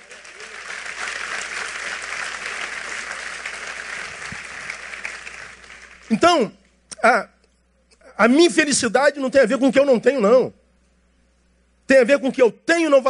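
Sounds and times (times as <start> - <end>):
audience applause: 0.0 - 6.2
speech: 6.1 - 7.3, 8.2 - 10.6, 11.9 - 13.0.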